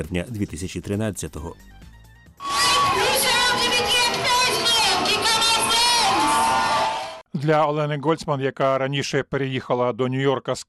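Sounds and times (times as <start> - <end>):
speech: 0.0 - 1.8, 7.4 - 10.6
crowd cheering: 2.4 - 7.2.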